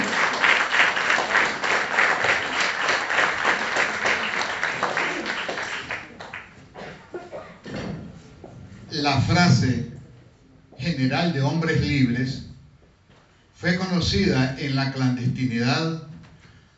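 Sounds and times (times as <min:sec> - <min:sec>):
crowd applauding: 0:00.0 - 0:06.6
speech: 0:09.1 - 0:09.9, 0:11.0 - 0:12.4, 0:13.6 - 0:16.1.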